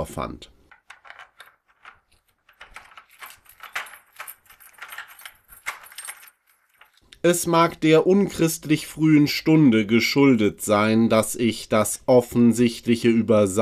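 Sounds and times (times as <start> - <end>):
speech: 0.0 - 0.6, 7.2 - 13.5
keys jangling: 0.8 - 7.0.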